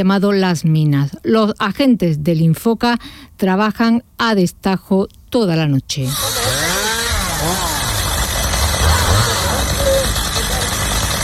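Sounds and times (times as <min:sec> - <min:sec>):
speech: 0:00.0 - 0:06.4, 0:07.4 - 0:07.7
Infoca chainsaws cutting during wildfire work in Minas de Río Tinto: 0:06.0 - 0:11.2.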